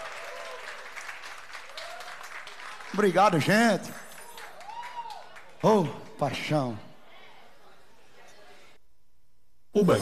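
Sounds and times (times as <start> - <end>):
audience applause after a live music performance: 0.0 - 5.9
speech: 2.9 - 4.0, 5.6 - 6.9, 9.8 - 10.0.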